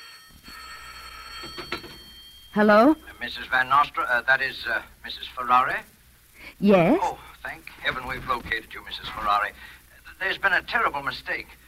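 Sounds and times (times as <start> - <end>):
telephone ringing: 0.0 - 4.0
speech: 2.6 - 5.9, 6.6 - 11.6.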